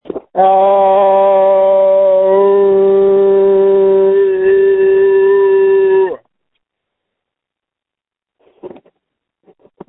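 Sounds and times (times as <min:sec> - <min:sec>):
person screaming: 0:00.4 - 0:06.2.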